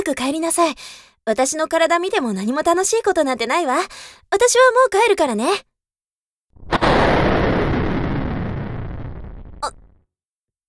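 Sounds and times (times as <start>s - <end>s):
speech: 0.0s - 5.7s
thunder clap: 6.6s - 9.8s.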